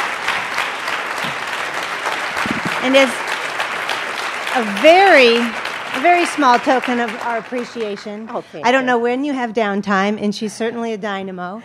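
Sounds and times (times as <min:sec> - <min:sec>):
audience applause: 0:00.0 - 0:08.4
speech: 0:02.8 - 0:03.3, 0:04.5 - 0:11.6.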